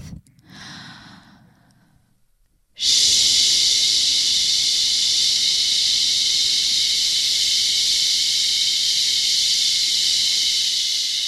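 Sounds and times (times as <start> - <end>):
man shushing: 2.8 - 11.2.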